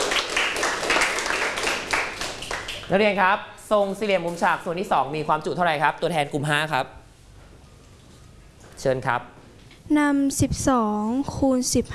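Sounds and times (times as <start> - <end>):
students in a math classroom clapping for a classmate: 0.0 - 3.0
speech: 2.9 - 7.0, 8.8 - 11.9.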